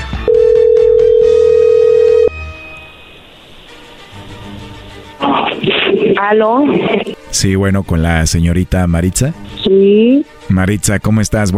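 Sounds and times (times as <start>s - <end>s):
phone line ringing tone: 0.3s - 2.9s
quiet phone line hiss: 2.6s - 7.3s
crackly noise burst: 2.8s - 7.2s
speech: 6.2s - 11.5s.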